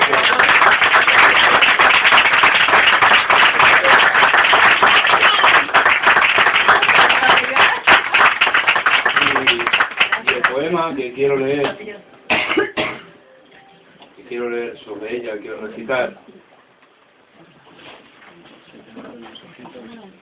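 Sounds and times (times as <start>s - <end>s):
audience applauding: 0.0s - 10.8s
speech: 11.2s - 11.8s, 15.3s - 16.3s.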